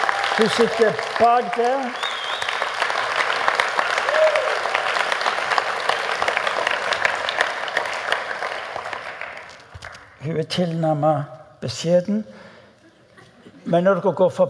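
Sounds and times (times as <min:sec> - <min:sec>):
audience clapping: 0:00.0 - 0:10.3
speech: 0:00.4 - 0:02.1, 0:10.2 - 0:12.4, 0:13.6 - 0:14.4.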